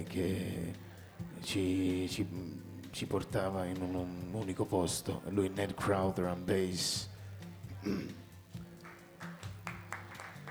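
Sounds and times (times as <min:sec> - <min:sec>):
speech: 0:00.0 - 0:07.1, 0:07.8 - 0:08.2
light shy audience applause: 0:07.8 - 0:10.4.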